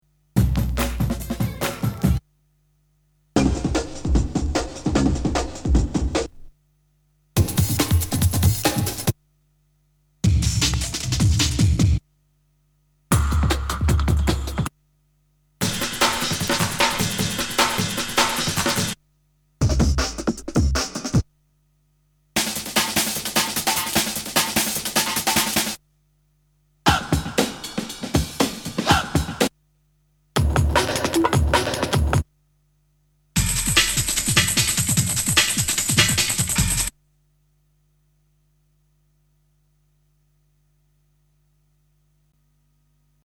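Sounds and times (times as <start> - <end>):
breakbeat drums: 0.4 - 2.3, 3.4 - 6.5, 7.4 - 9.2, 10.2 - 12.0, 13.1 - 14.7, 15.6 - 19.0, 19.6 - 21.3, 22.4 - 25.8, 26.9 - 29.6, 30.4 - 32.3, 33.4 - 37.0.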